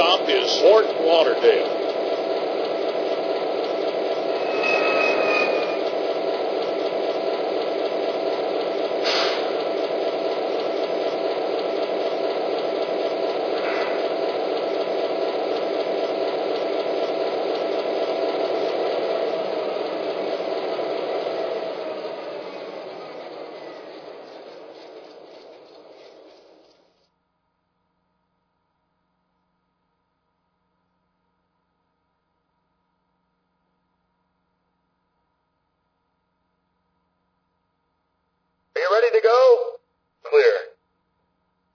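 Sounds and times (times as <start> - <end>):
trains: 0.0 - 27.1, 38.7 - 40.7.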